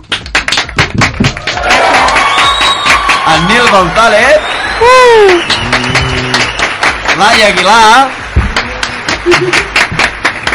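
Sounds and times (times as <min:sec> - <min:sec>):
crowd applause: 0:00.4 - 0:10.5
speech: 0:03.3 - 0:06.0, 0:07.2 - 0:08.2, 0:09.2 - 0:09.6.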